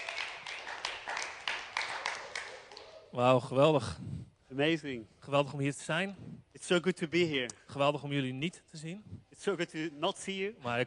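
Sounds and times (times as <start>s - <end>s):
audience applause: 0.0s - 3.0s
speech: 3.1s - 10.8s.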